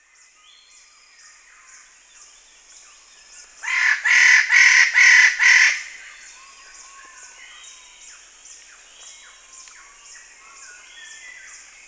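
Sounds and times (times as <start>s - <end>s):
Wallace's standardwing harsh grating calls: 3.6s - 6.0s.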